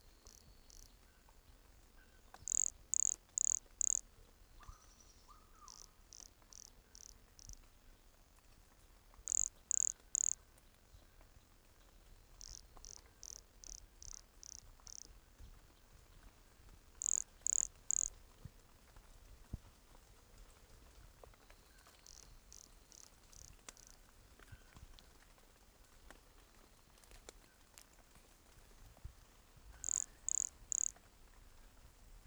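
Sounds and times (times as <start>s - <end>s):
soft steady hiss: 0.0s - 32.2s
pumpkin toadlet calls: 2.4s - 4.0s, 9.3s - 10.4s, 17.0s - 18.1s, 29.8s - 30.9s.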